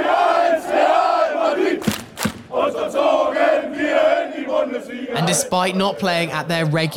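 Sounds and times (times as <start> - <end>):
football fans chanting at an away match: 0.0 - 6.3
sharp bangs: 1.8 - 2.9
speech: 5.1 - 6.9.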